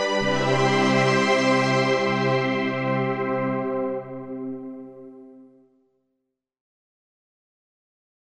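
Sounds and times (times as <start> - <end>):
Yamaha SY77 synthesizer string pads melody: 0.0 - 5.4.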